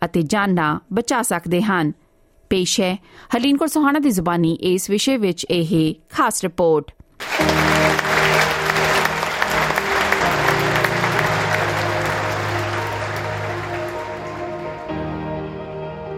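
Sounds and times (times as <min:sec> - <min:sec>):
speech: 0:00.1 - 0:07.8
applause in a packed Sydney Town Hall theatre after a TED talk: 0:07.2 - 0:15.2.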